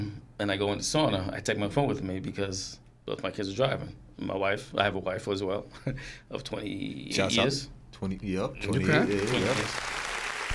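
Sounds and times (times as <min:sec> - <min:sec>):
speech: 0:00.4 - 0:09.9
audience applause: 0:09.0 - 0:10.5.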